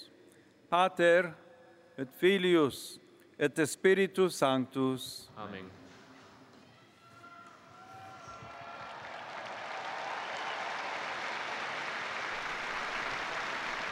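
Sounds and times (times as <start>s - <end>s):
speech: 0.7s - 1.4s, 2.0s - 5.8s
faithful applauding the pope after prayer: 7.9s - 13.9s.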